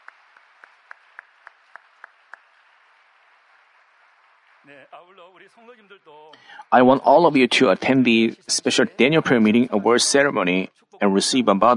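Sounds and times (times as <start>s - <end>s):
steady evenly spaced hand claps: 0.0s - 5.0s
speech: 4.6s - 11.7s
laughter: 4.7s - 11.7s.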